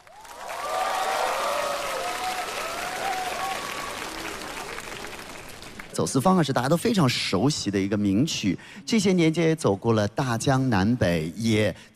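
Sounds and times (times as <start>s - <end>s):
large audience applause: 0.0s - 6.2s
scattered cheers and whistles: 0.1s - 4.5s
speech: 6.0s - 11.9s.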